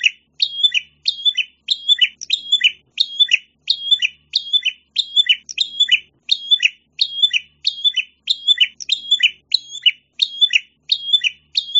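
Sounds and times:
prinia chirping: 0.0 - 11.7.

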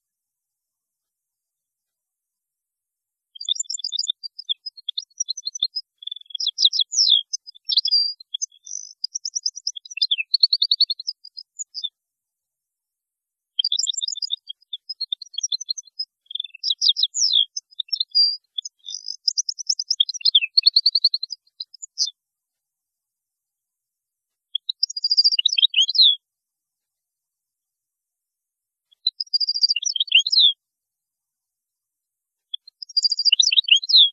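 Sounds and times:
European goldfinch singing: 3.4 - 11.9, 13.6 - 22.1, 24.5 - 26.2, 29.0 - 30.5, 32.8 - 34.1.

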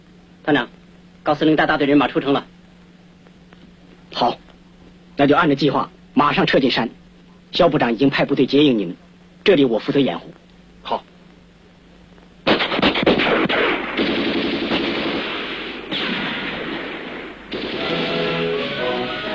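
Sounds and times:
speech: 0.5 - 2.5, 4.2 - 4.4, 5.2 - 11.1
gunfire: 12.4 - 19.2.

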